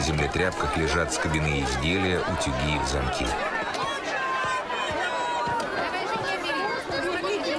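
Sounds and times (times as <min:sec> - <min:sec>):
dense crowd chatter in a bustling town square: 0:00.0 - 0:07.5
speech: 0:00.1 - 0:03.6.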